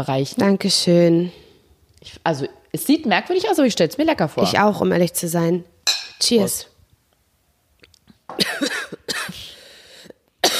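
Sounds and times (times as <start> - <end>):
speech: 0.0 - 1.4, 2.0 - 6.7
person coughing: 8.3 - 9.5, 10.4 - 10.5.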